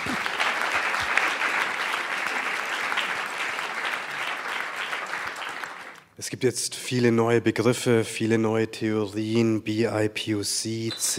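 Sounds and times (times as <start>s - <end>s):
audience applause: 0.0s - 6.0s
speech: 6.2s - 11.1s.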